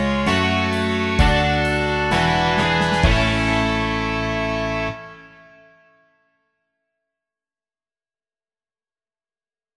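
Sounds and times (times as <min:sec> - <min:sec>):
rock music: 0:00.0 - 0:05.5.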